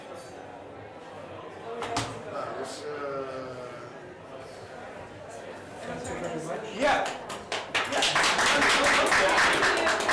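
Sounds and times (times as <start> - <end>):
speech: 5.9 - 7.3
audience applause: 7.5 - 10.1.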